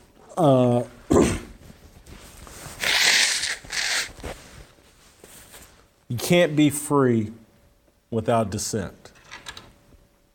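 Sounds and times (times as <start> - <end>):
speech: 0.4 - 0.9, 6.3 - 7.4, 8.1 - 9.0
person blowing nose: 2.8 - 4.2.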